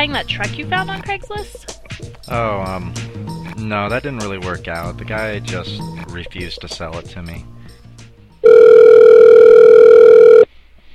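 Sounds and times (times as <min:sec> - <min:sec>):
speech: 0:00.0 - 0:07.6
telephone ringing on the line: 0:08.4 - 0:10.5.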